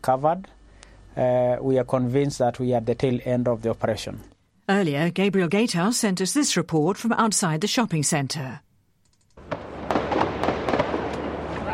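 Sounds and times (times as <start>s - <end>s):
speech: 0.0s - 0.6s, 1.2s - 8.7s
gunfire: 9.4s - 11.7s.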